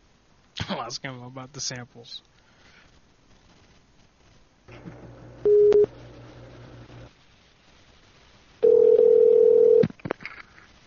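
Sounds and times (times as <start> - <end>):
speech: 0.6 - 2.4
telephone dial tone: 5.4 - 5.9, 8.6 - 9.8.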